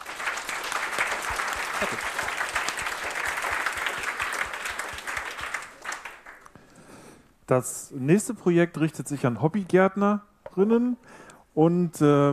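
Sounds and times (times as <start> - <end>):
audience applause: 0.0 - 6.5
speech: 1.8 - 2.2, 7.5 - 12.3.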